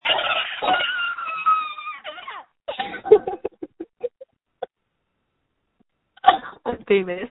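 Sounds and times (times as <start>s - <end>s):
screaming: 0.0s - 2.5s
laughter: 2.8s - 4.2s.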